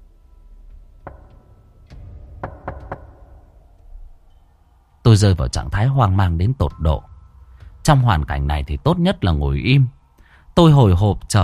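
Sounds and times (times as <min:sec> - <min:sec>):
quick knocks on a door: 0:01.0 - 0:03.5
speech: 0:05.1 - 0:07.1, 0:07.9 - 0:10.0, 0:10.6 - 0:11.4.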